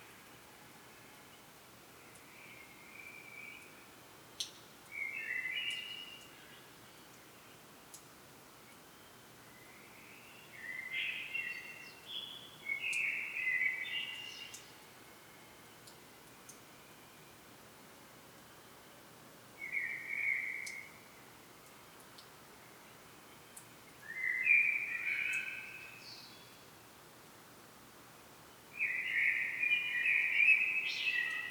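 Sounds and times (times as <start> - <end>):
faint steady hiss: 0.0 - 31.4
common blackbird song: 4.4 - 7.6, 9.0 - 14.8, 19.6 - 21.1, 23.3 - 26.7, 28.7 - 31.4.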